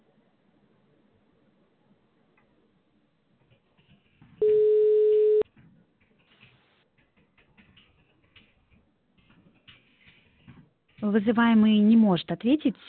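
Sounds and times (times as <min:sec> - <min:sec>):
telephone ringback tone while an automated call connects: 0:04.4 - 0:05.4
speech: 0:11.1 - 0:12.8.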